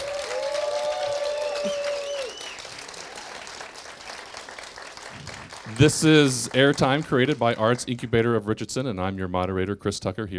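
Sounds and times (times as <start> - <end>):
round of applause: 0.0 - 8.1
speech: 5.7 - 10.3.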